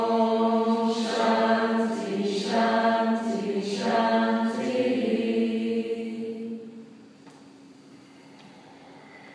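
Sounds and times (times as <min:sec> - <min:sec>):
closing chant: 0:00.0 - 0:06.9.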